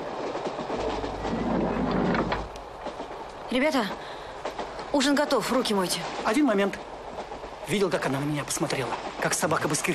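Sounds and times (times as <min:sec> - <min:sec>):
train carriage rattling along the rails: 0:00.0 - 0:09.9
low hum: 0:00.7 - 0:02.8
speech: 0:03.5 - 0:04.2, 0:04.9 - 0:06.9, 0:07.7 - 0:09.9.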